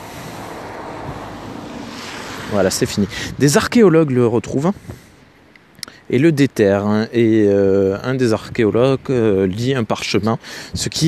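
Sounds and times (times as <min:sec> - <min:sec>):
cars passing by outdoors: 0:00.0 - 0:05.7
speech: 0:02.5 - 0:05.0, 0:06.1 - 0:11.0.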